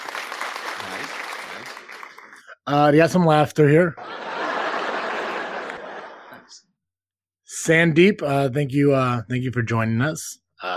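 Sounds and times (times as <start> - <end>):
clapping sound effect: 0.0 - 2.5, 5.6 - 5.8
speech: 2.7 - 4.2, 7.6 - 10.7
laughter: 4.0 - 6.7, 10.6 - 10.7.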